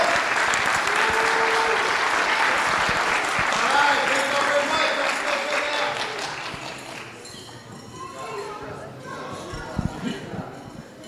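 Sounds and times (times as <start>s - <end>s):
audience round of applause: 0.0s - 7.2s.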